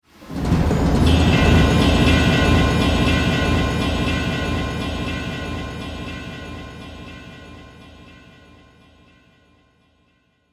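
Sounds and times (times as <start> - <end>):
cinematic drum stinger: 0.2 - 8.0.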